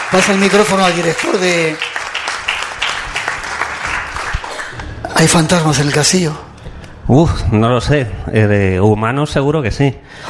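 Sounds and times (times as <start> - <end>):
audience applause for the show's producer: 0.0 - 5.4
speech: 0.1 - 1.9, 5.2 - 6.5, 7.1 - 10.2.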